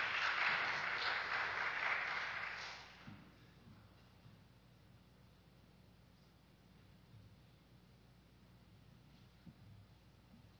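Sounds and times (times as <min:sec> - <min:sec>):
audience applauding: 0:00.0 - 0:03.1.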